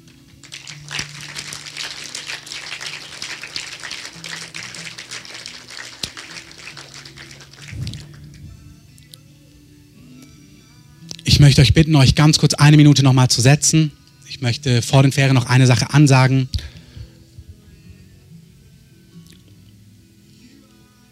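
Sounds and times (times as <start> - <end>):
audience applause: 0.0 - 8.4
low steady hum: 7.6 - 9.2
speech: 11.4 - 16.6.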